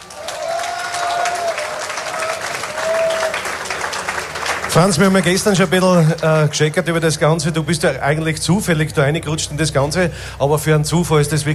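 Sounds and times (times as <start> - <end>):
audience applause: 0.0 - 6.9
speech: 4.8 - 11.5.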